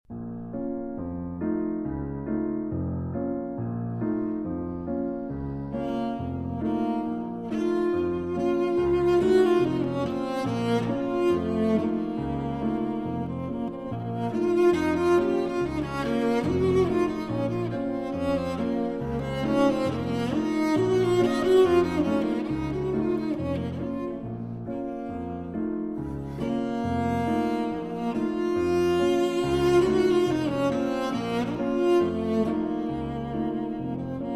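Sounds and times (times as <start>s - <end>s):
cello and piano arrangement: 0.1s - 34.3s.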